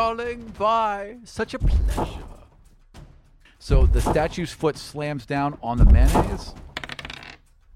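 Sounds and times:
speech: 0.0 - 2.4, 3.6 - 6.7
dice rolled across a hard surface: 6.6 - 7.5.

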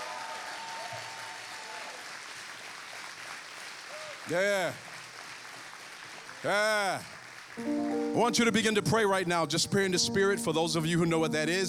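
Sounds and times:
audience clapping: 0.0 - 9.2
speech: 4.2 - 4.9, 6.4 - 11.6.

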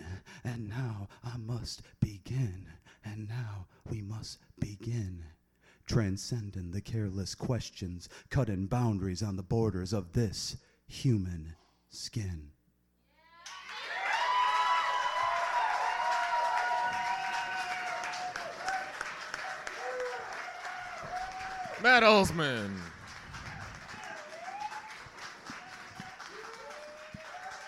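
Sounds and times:
speech: 0.4 - 5.3, 5.9 - 12.6, 21.8 - 23.0
crowd applauding and cheering: 13.4 - 27.6.

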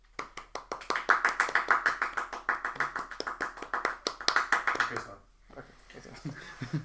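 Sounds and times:
small group clapping: 0.0 - 5.2.

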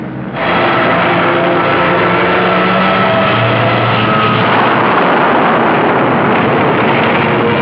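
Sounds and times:
aircraft engines roaring during a napalm air strike: 0.0 - 7.6
deep rumbling napalm blast: 0.0 - 7.6.

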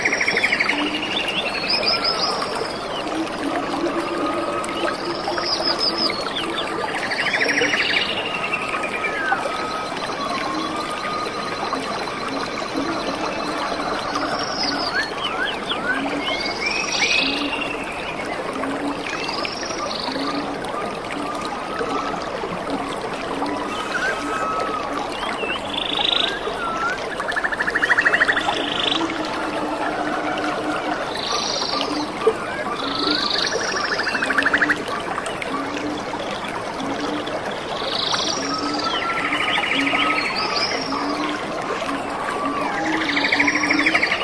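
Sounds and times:
rainforest frogs or insects pulsing: 0.0 - 44.2
bright chirping calls: 23.6 - 26.9.

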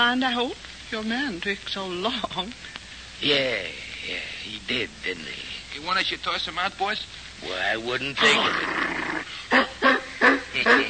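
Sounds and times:
speech: 0.0 - 10.8
dog Butch barking: 9.5 - 10.8.

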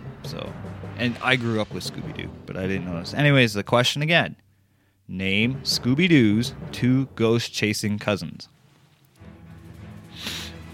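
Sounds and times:
speech: 0.3 - 4.4, 5.1 - 8.6
sniffing: 10.2 - 10.6.

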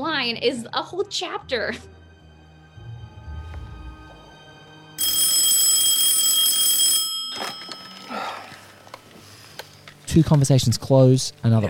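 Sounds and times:
speech: 0.2 - 2.0, 10.1 - 11.6
low hum: 2.3 - 4.8
phone alarm ringing: 5.0 - 8.2.

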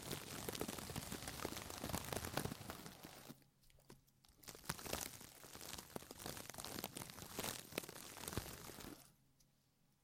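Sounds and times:
deep ear massage rubbing and crinkling: 0.0 - 3.4, 4.6 - 9.1.

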